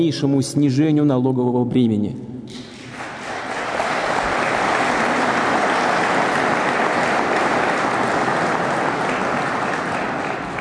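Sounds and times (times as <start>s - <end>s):
speech: 0.0s - 2.7s
audience applause: 2.7s - 10.5s.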